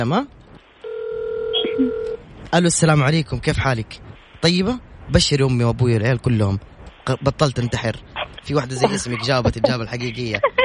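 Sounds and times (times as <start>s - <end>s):
speech: 0.0s - 0.4s, 1.8s - 10.6s
phone line tone: 0.8s - 2.2s
laughter: 8.8s - 10.6s.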